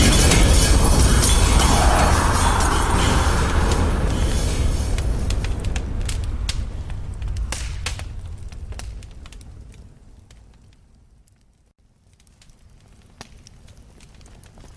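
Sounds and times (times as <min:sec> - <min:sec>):
heavy explosion with deep rumble: 0:00.0 - 0:09.3
scattered crackles: 0:00.0 - 0:14.7.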